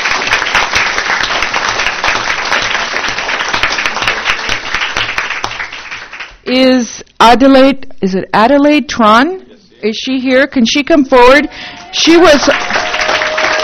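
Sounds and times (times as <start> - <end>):
audience applause: 0.0 - 6.4, 11.6 - 13.6
speech: 6.5 - 12.8.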